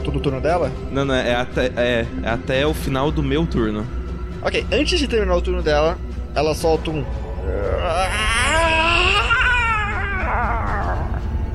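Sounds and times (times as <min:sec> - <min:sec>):
speech: 0:00.2 - 0:08.7
creature screaming: 0:07.7 - 0:11.2.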